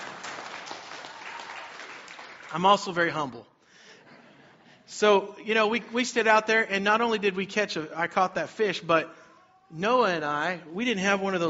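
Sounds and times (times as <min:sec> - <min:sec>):
audience clapping: 0:00.0 - 0:03.1
speech: 0:02.5 - 0:03.5, 0:04.9 - 0:11.4.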